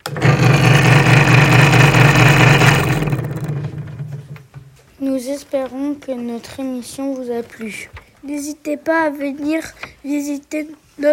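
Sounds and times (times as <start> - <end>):
saw running with dust blower: 0.0 - 4.2
speech: 5.2 - 11.1.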